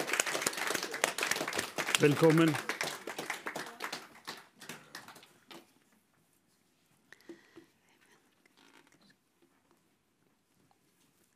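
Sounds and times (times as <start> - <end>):
audience applause: 0.0 - 5.4
speech: 2.0 - 2.7.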